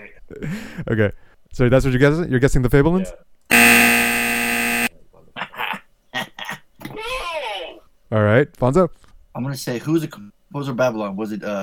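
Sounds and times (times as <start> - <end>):
speech: 0.2 - 3.9, 8.1 - 11.6
quiz buzzer: 3.5 - 4.9.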